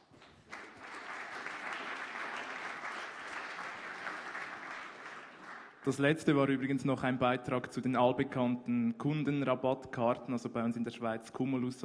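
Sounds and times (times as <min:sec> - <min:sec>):
audience applause: 0:00.2 - 0:05.9
speech: 0:05.8 - 0:11.8.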